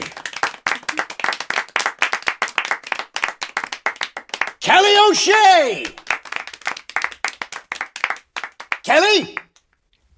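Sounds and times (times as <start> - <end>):
audience applause welcoming a performance poet at a poetry event: 0.0 - 5.0, 5.7 - 9.4
speech: 4.7 - 6.0.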